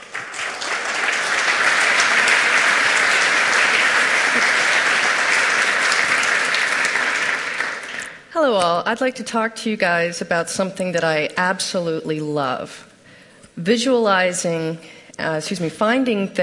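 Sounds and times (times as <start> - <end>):
audience applause: 0.0 - 8.3
speech: 8.5 - 12.9, 13.6 - 16.4.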